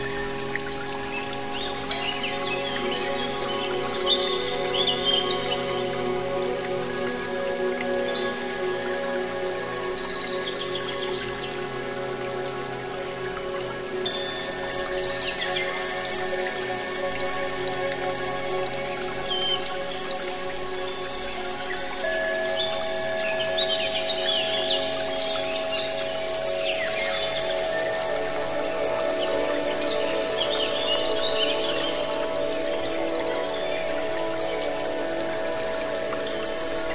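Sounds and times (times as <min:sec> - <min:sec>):
wind chimes: 0:00.0 - 0:36.9.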